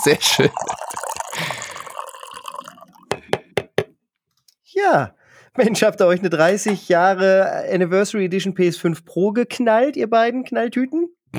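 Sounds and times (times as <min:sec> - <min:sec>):
speech: 0:00.0 - 0:00.8, 0:01.4 - 0:01.6, 0:04.9 - 0:11.3
coffee being poured into a cup: 0:00.0 - 0:03.5.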